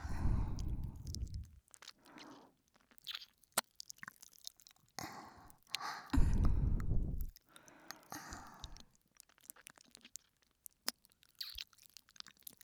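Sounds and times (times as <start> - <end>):
licking both ears in ASMR: 0.0 - 2.4, 5.0 - 8.8.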